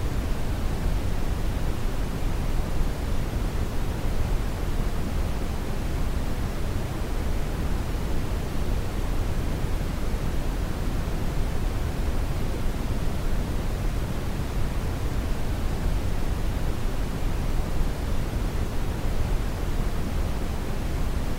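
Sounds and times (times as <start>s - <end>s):
white noise: 0.0s - 21.3s.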